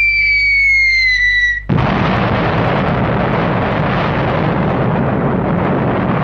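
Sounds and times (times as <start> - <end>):
high whistling tones gliding downward: 0.0 - 1.7
atomic bomb explosion sound effect: 0.6 - 6.2.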